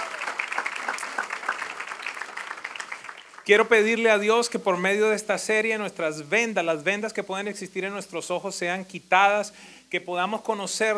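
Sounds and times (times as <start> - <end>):
audience applause: 0.0 - 3.6
speech: 3.4 - 10.9.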